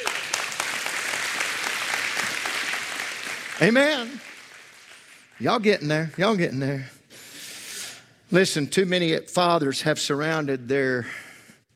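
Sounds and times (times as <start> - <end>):
audience applauding: 0.0 - 6.4
speech: 3.6 - 4.3, 5.4 - 7.0, 8.3 - 11.2.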